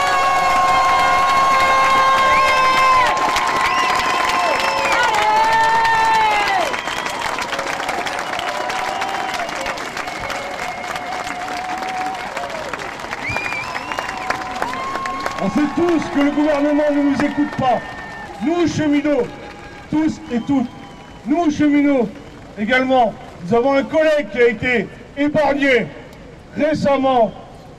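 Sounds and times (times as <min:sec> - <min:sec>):
large crowd clapping and cheering: 0:00.0 - 0:24.5
whistles: 0:03.6 - 0:05.1, 0:06.6 - 0:11.3, 0:13.2 - 0:14.4, 0:20.2 - 0:22.5
speech: 0:15.9 - 0:26.0, 0:26.6 - 0:27.4.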